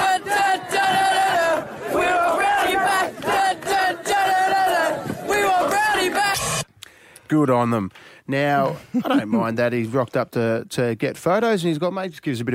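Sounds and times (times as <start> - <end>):
protest crowd chanting: 0.0 - 6.7
speech: 7.3 - 12.5.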